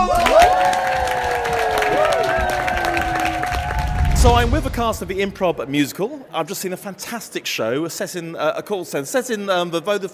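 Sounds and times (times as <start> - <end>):
crowd whoops and shouts: 0.0 - 4.5
crowd applauding: 0.0 - 5.6
speech: 4.2 - 10.1.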